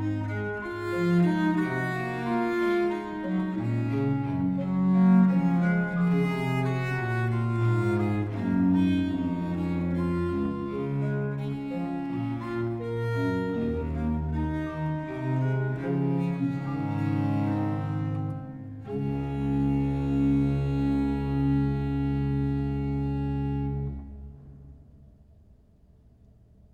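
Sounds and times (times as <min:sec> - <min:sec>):
duo for two bass viols in D major and minor: 0:00.0 - 0:24.8.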